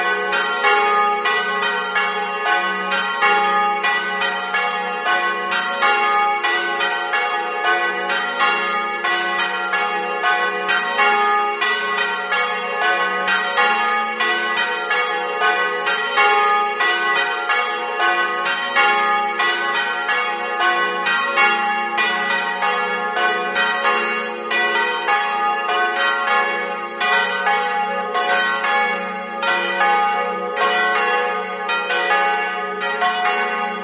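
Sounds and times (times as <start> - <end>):
bells ringing: 0.0 - 33.8.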